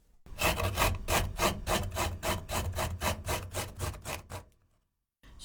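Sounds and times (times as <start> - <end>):
peeled ginger being grated: 0.3 - 4.6.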